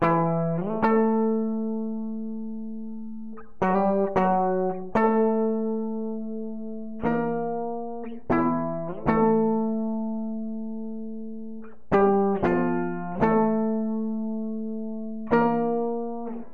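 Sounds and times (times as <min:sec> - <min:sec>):
looped guitar melodies: 0:00.0 - 0:16.5.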